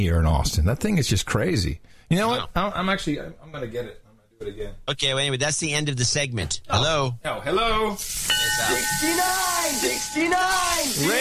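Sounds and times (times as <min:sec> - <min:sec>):
speech: 0:00.0 - 0:11.1
rain stick shaken: 0:08.2 - 0:11.1.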